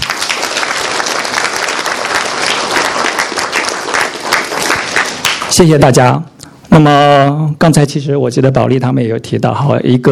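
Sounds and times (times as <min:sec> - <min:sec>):
crowd applause: 0:00.0 - 0:05.6
speech: 0:05.6 - 0:10.1.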